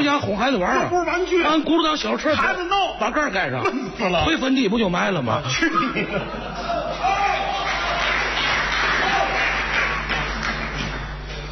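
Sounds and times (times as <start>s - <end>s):
speech: 0.1s - 6.7s
laughter: 5.4s - 11.0s
audience applause: 6.8s - 11.5s.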